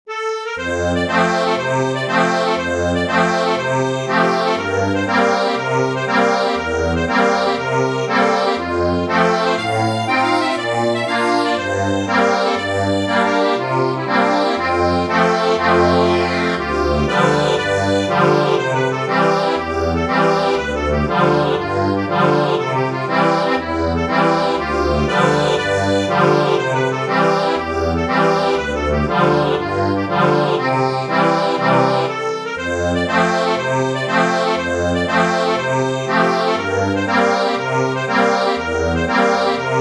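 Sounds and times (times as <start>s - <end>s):
accordion: 0.0s - 39.7s.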